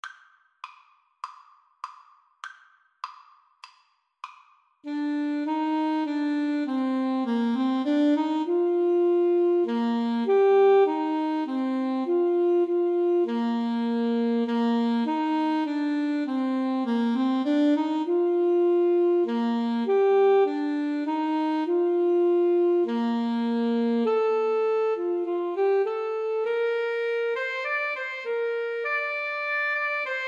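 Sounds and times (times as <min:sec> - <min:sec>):
clarinet: 0:04.8 - 0:30.2
saxophone: 0:04.8 - 0:30.2.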